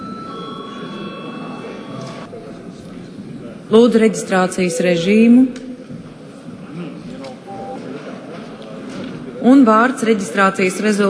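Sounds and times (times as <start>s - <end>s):
parliament session electric bell ringing: 0.0s - 2.3s
murmur: 0.0s - 11.0s
speech: 3.7s - 5.6s, 9.5s - 11.0s.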